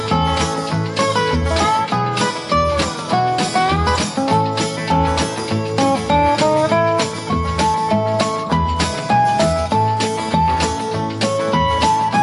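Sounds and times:
steel guitar chimes in country style: 0.0s - 12.2s.

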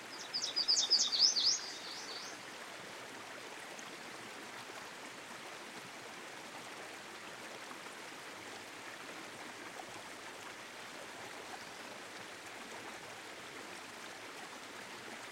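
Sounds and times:
stream flowing: 0.0s - 15.2s
Yellow Warbler singing: 0.2s - 2.4s.

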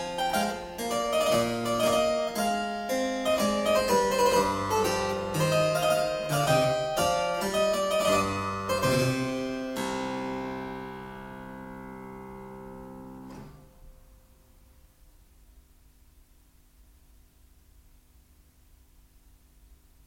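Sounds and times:
minuet in D minor: 0.0s - 13.5s.

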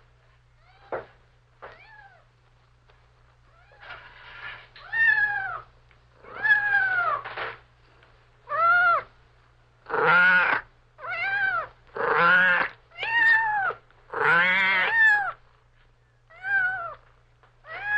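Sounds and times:
cat meowing: 4.8s - 5.7s, 6.2s - 7.3s, 8.5s - 9.1s, 9.9s - 15.4s, 16.3s - 17.0s, 17.7s - 17.9s.

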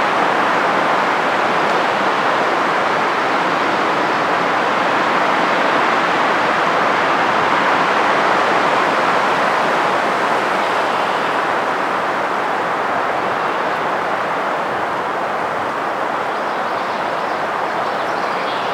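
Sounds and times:
wind in a pine forest: 0.0s - 18.7s.

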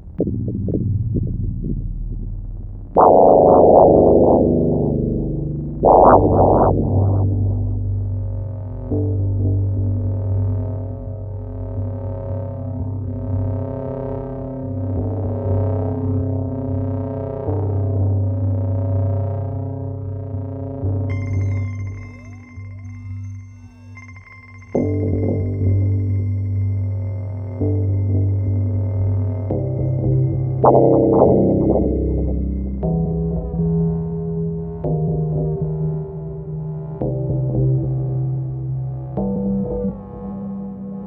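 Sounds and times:
terror drone: 0.0s - 23.0s, 24.0s - 41.0s.

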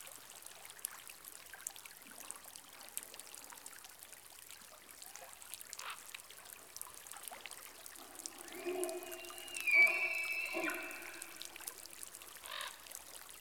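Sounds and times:
elk in rainforest: 8.0s - 12.0s.

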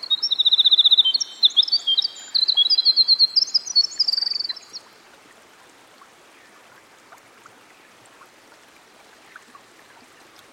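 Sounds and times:
winter wren singing by a stream: 0.0s - 4.8s.

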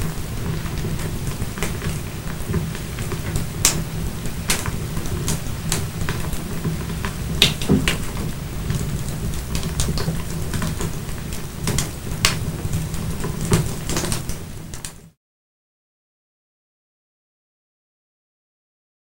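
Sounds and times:
log fire burning: 0.0s - 15.1s.

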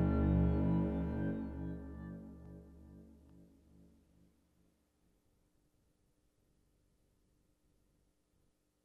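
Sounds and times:
drone: 0.0s - 3.3s.

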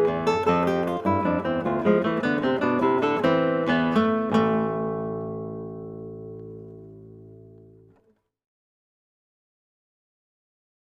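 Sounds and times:
classical piece on 8 string guitar: 0.0s - 8.2s.

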